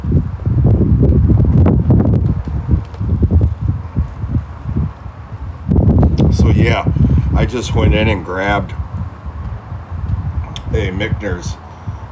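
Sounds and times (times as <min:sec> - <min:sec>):
wind buffeting the microphone outdoors: 0:00.0 - 0:12.1
speech: 0:06.6 - 0:08.8, 0:10.7 - 0:11.6.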